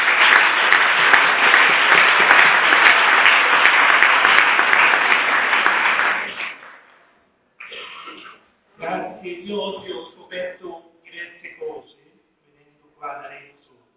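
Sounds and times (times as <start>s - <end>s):
audience applause: 0.0s - 6.9s.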